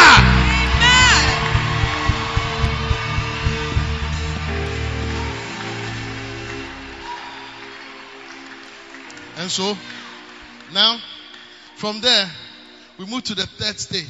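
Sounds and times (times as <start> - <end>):
audience cheering with scattered whoops and shouts: 0.0 - 9.2
audience clapping: 0.0 - 12.8
speech: 9.5 - 10.0, 10.7 - 11.1, 11.8 - 12.4, 13.0 - 14.0.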